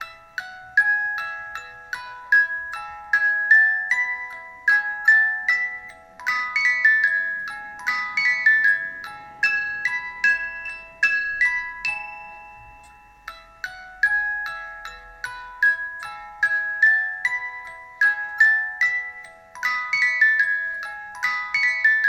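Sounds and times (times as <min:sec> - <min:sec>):
music box melody: 0:00.0 - 0:22.0.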